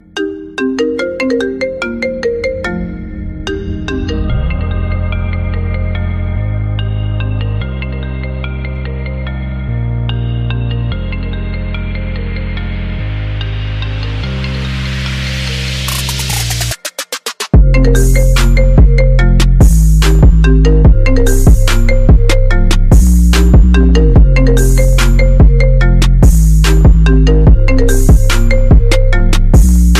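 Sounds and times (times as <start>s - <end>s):
hip hop marimba remix: 0.0s - 9.6s, 10.2s - 29.9s.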